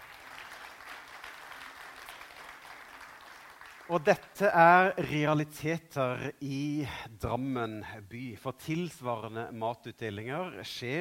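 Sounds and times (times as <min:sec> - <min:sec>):
audience applause: 0:00.0 - 0:04.1
speech: 0:03.9 - 0:11.0.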